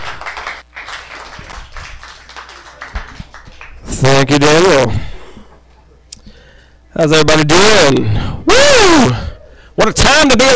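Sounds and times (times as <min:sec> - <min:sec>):
audience applause: 0:00.0 - 0:04.1
speech: 0:04.0 - 0:05.0, 0:07.0 - 0:08.3, 0:09.0 - 0:09.2, 0:09.8 - 0:10.5.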